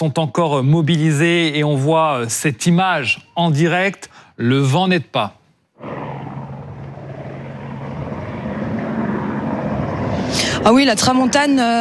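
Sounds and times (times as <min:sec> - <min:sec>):
speech: 0:00.0 - 0:06.0, 0:10.6 - 0:11.8
firefighting aircraft flying overhead: 0:05.8 - 0:11.8.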